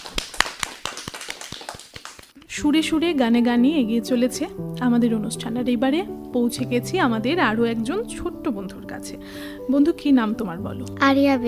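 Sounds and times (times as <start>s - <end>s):
clapping for a child singer: 0.0s - 2.5s
speech: 2.6s - 11.4s.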